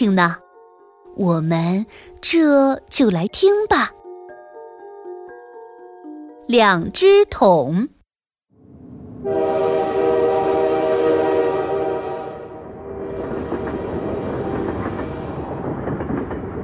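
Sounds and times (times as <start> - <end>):
speech: 0.0 - 0.4, 1.2 - 4.0, 6.5 - 8.0
speeding train rattling rumble: 8.7 - 16.6
speeding train horn blast: 9.2 - 15.4.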